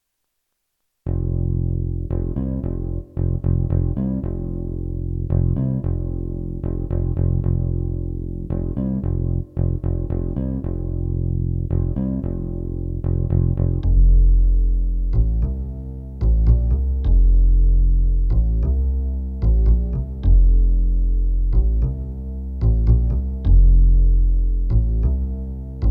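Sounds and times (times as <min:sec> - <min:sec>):
world music bass part: 0:01.0 - 0:25.9.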